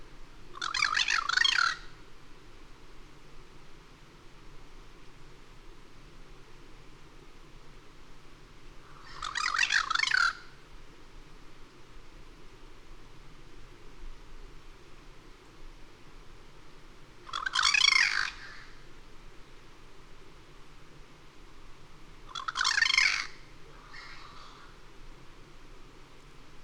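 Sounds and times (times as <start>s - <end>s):
quiet hiss: 0.0s - 26.6s
bird giving harsh pulsed squawks: 0.6s - 1.8s, 9.0s - 10.4s, 17.3s - 18.7s, 22.3s - 24.8s.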